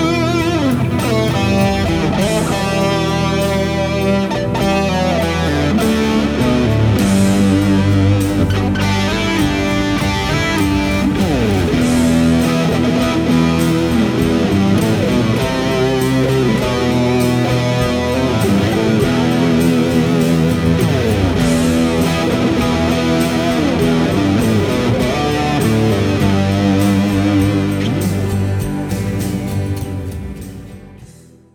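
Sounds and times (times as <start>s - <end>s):
Civil War Big Muff fuzz pedal distortion: 0.0s - 30.9s.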